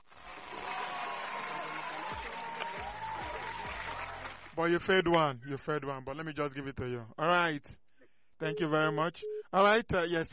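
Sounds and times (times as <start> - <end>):
hand clapping: 0.2 - 4.6
speech: 4.6 - 7.8, 8.4 - 10.3.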